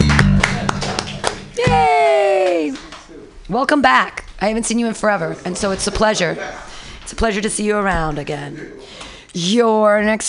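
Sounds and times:
audience clapping: 0.0s - 3.1s
speech: 3.5s - 10.2s.

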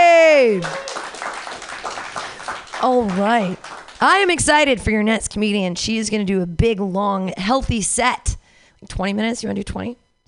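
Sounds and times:
audience clapping: 0.4s - 4.7s
speech: 0.5s - 0.9s, 2.8s - 10.2s.

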